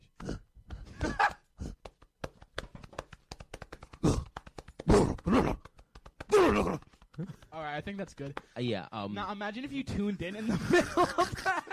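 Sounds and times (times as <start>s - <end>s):
person imitating gorilla grunts and hooting cries: 0.1s - 1.9s, 4.0s - 7.4s
hands thumping on chest: 0.2s - 8.5s
speech: 5.3s - 5.6s, 7.6s - 11.7s
laughter: 10.2s - 11.7s.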